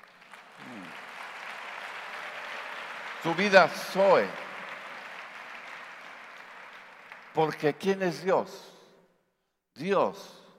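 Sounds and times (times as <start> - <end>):
audience applauding: 0.0 - 7.8
speech: 3.2 - 4.4, 7.4 - 8.7, 9.8 - 10.4.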